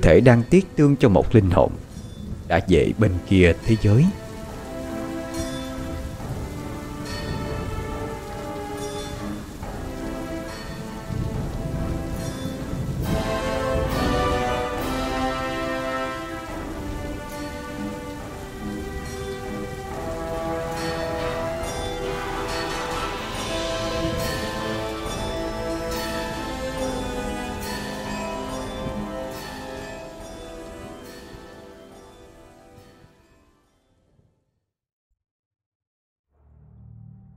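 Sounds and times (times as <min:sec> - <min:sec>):
speech: 0:00.0 - 0:01.8, 0:02.5 - 0:04.2
steady heavy rain: 0:00.0 - 0:33.3
low rolling thunder: 0:01.7 - 0:31.8
sustained tonal layers: 0:13.2 - 0:31.0.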